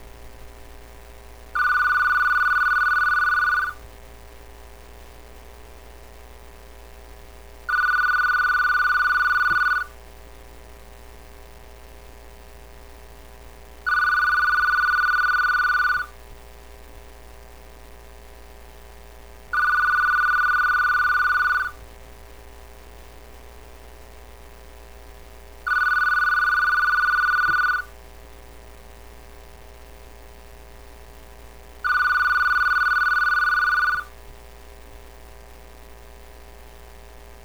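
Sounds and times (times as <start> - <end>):
telephone: 1.6 - 3.9, 7.7 - 10.0, 13.9 - 16.2, 19.6 - 21.9, 25.7 - 28.0, 31.8 - 34.2.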